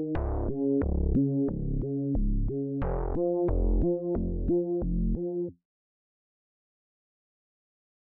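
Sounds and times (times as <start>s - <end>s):
bass: 0.0s - 5.6s.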